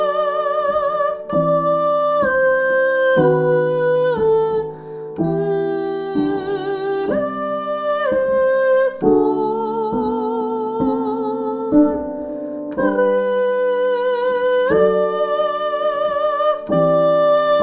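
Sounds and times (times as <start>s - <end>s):
soprano singing: 0.0s - 17.6s.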